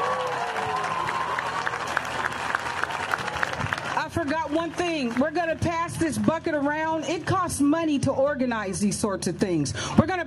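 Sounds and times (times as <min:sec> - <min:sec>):
audience applauding: 0:00.0 - 0:06.8
speech: 0:04.2 - 0:10.2.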